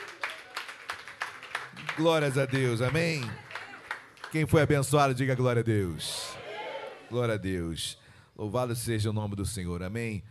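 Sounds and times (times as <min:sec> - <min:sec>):
audience clapping in rhythm: 0:00.0 - 0:04.8
speech: 0:02.0 - 0:03.4, 0:04.3 - 0:06.2, 0:07.1 - 0:10.2.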